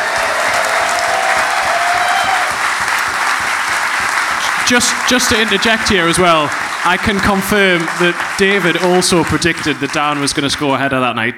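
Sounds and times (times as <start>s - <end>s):
whistle or cheer: 0.0s - 10.8s
laughter: 0.0s - 11.2s
crowd applauding: 0.0s - 11.3s
speech: 4.7s - 11.3s.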